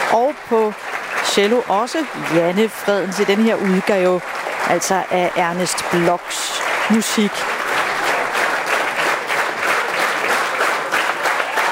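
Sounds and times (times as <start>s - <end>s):
concert applause from a large audience: 0.0s - 11.7s
speech: 0.1s - 7.6s
whooping and cheering: 11.0s - 11.7s.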